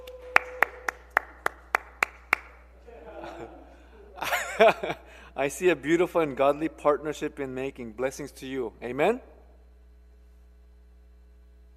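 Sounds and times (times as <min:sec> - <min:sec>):
church congregation clapping for a congratulated member: 0:00.0 - 0:02.7
laughter: 0:02.8 - 0:05.2
speech: 0:04.6 - 0:09.3.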